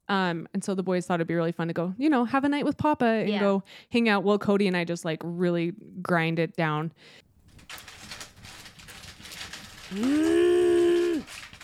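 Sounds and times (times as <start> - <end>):
speech: 0.1 - 7.8, 9.9 - 10.7
rummaging through a cooler of melted ice: 7.3 - 9.9.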